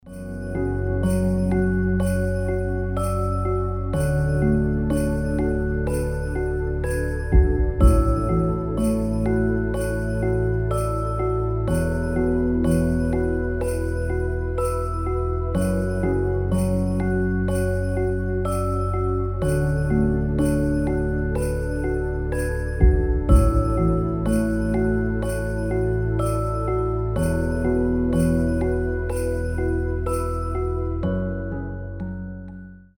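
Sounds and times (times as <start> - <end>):
lullaby music: 0.0 - 32.9.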